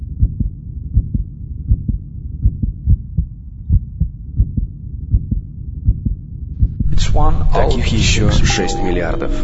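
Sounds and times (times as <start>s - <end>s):
human heart beating: 0.0s - 7.4s
speech: 7.2s - 9.4s.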